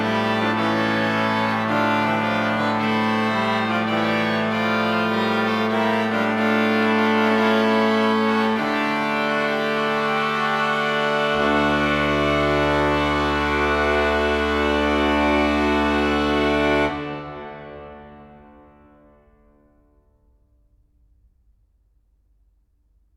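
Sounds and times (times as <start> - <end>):
fugue: 0.0 - 18.1.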